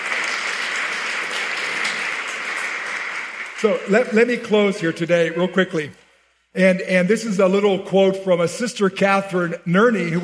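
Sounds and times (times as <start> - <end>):
audience applause: 0.0 - 4.9
speech: 3.6 - 6.0, 6.6 - 10.2.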